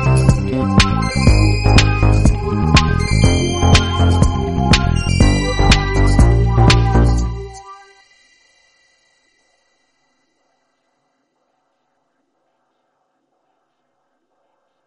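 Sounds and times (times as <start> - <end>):
disco music: 0.0 - 8.0.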